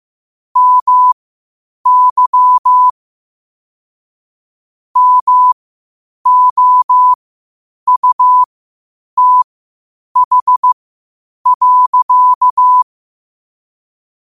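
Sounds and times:
morse code at 5 wpm: 0.6s - 1.2s, 1.9s - 2.9s, 5.0s - 5.6s, 6.2s - 7.2s, 7.9s - 8.5s, 9.2s - 9.5s, 10.2s - 10.8s, 11.5s - 12.8s.

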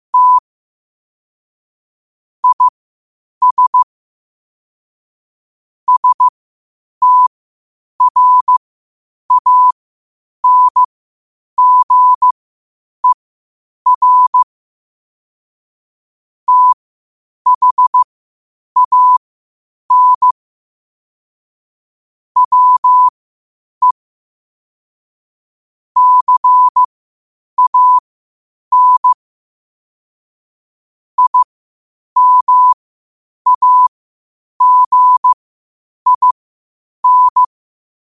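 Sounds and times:
morse code beeps at 5 wpm: 0.2s - 0.4s, 2.4s - 2.7s, 3.4s - 3.9s, 5.9s - 6.3s, 7.0s - 7.3s, 8.0s - 8.6s, 9.3s - 9.8s, 10.4s - 10.9s, 11.6s - 12.4s, 13.9s - 14.5s, 16.5s - 16.8s, 17.5s - 18.1s, 18.8s - 19.2s, 19.9s - 20.4s, 22.4s - 23.1s, 26.0s - 26.9s, 27.6s - 28.0s, 28.7s - 29.2s, 31.2s - 31.5s, 32.2s - 32.8s, 33.5s - 33.9s, 34.6s - 35.4s, 36.1s - 36.4s, 37.0s - 37.5s.

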